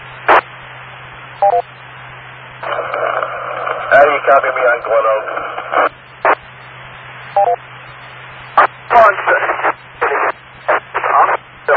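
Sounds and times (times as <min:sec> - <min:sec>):
radio-like static: 0:00.2 - 0:00.5, 0:02.6 - 0:11.7
electronic beeps: 0:01.4 - 0:01.7, 0:07.3 - 0:07.6
speech: 0:04.0 - 0:05.9.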